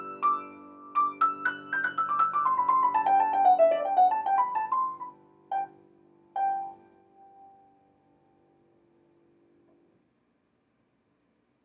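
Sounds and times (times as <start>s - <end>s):
piano improvisation in G major: 0.0s - 7.7s.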